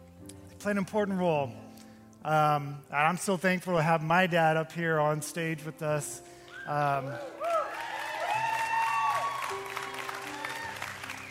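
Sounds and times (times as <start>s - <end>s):
speech: 0.6s - 1.6s, 2.2s - 7.4s
crowd applause: 6.9s - 11.2s.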